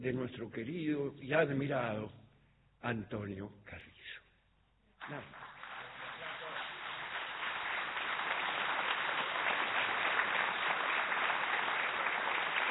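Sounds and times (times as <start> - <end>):
speech: 0.0 - 2.2, 2.8 - 4.2, 5.0 - 5.5
audience applause: 5.0 - 12.6.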